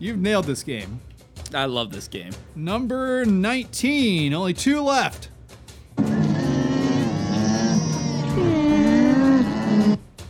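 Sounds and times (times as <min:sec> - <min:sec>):
speech: 0:00.0 - 0:05.3
alpaca giving a nasal call: 0:06.0 - 0:10.0.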